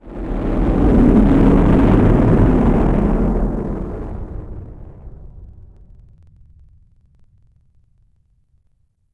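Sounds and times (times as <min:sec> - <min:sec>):
ICBM run: 0:00.1 - 0:06.1.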